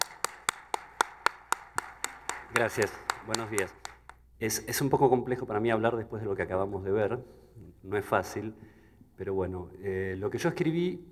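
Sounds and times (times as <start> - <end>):
audience applause welcoming speaker: 0.0 - 4.2
speech: 2.5 - 3.8, 4.4 - 11.1.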